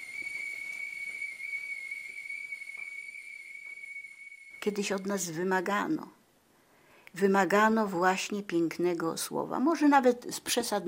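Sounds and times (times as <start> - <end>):
kettle whistling on boiling water: 0.0 - 5.9
speech: 4.6 - 6.2, 7.2 - 10.8.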